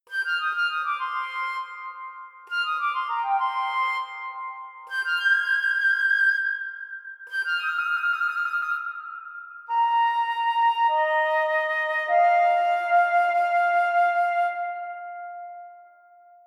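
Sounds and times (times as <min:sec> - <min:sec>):
flute: 0:00.0 - 0:16.4.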